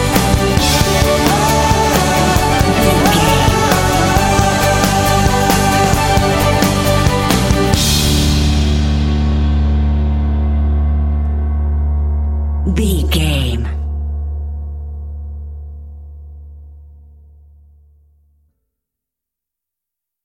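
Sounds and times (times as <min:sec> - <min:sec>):
bright uplifting motivational music: 0:00.0 - 0:13.8.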